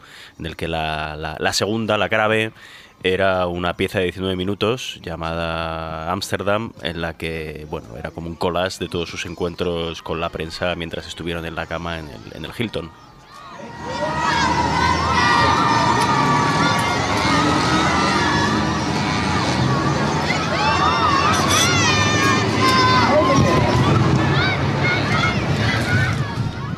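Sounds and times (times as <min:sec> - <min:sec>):
speech: 0:00.4 - 0:13.1
frenzied fans screaming outside hotel window: 0:08.9 - 0:26.7.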